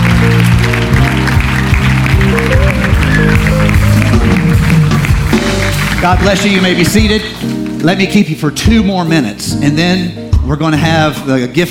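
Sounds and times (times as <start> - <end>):
audience clapping hands in praise: 0.0 - 8.2
loud steady music with a deep bass line: 0.0 - 11.6
speech: 6.1 - 11.6.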